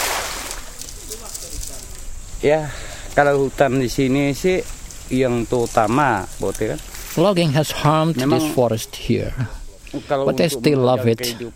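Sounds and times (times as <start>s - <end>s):
metal fishing net splashing into river: 0.0s - 1.1s
speech: 2.4s - 11.5s.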